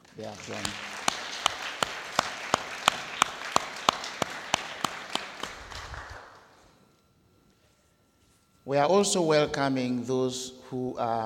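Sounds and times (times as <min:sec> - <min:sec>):
church congregation rhythmic clapping for the property committee: 0:00.0 - 0:06.8
speech: 0:00.2 - 0:01.0, 0:08.7 - 0:11.2.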